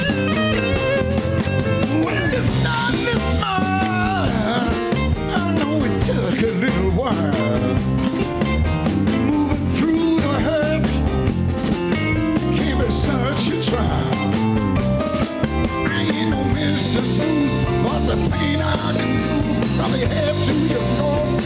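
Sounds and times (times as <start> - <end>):
song: 0.0 - 21.4.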